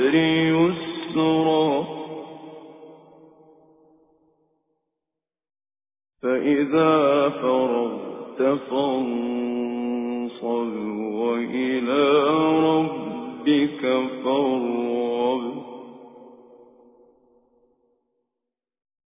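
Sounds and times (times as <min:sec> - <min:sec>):
Quran recitation with tajweed: 0:00.0 - 0:02.9, 0:06.2 - 0:16.8.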